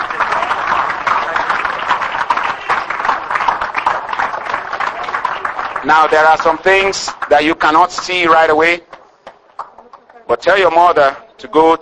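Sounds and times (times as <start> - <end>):
audience clapping hands: 0.0 - 11.7
speech: 5.8 - 8.9, 10.3 - 11.8.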